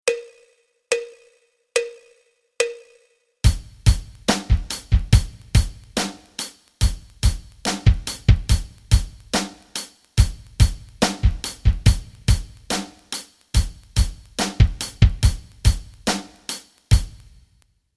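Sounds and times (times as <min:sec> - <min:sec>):
rock rhythms: 0:03.4 - 0:17.5.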